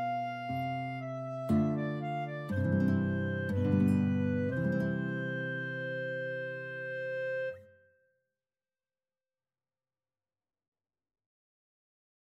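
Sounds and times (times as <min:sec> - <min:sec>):
guitar in a clarinet and guitar duet: 0:00.0 - 0:07.8
clarinet in a clarinet and guitar duet: 0:00.0 - 0:08.0.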